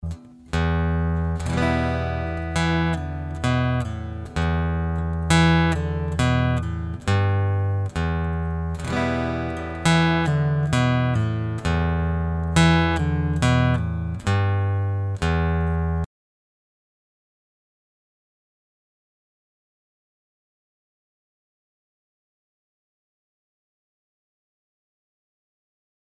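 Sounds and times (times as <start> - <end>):
acoustic guitar pull-off: 0.0 - 16.1.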